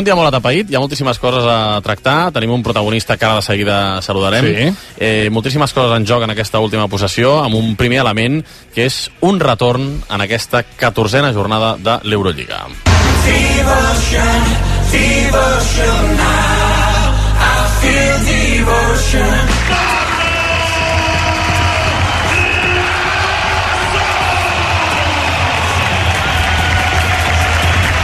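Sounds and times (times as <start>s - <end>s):
speech: 0.0s - 16.7s, 17.8s - 20.0s
arena crowd ovation and applause: 12.9s - 14.8s, 18.8s - 28.0s.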